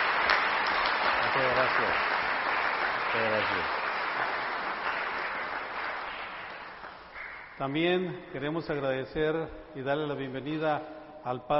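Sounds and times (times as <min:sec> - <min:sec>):
audience applauding: 0:00.0 - 0:07.6
speech: 0:01.4 - 0:02.2, 0:03.1 - 0:03.8, 0:07.6 - 0:11.5.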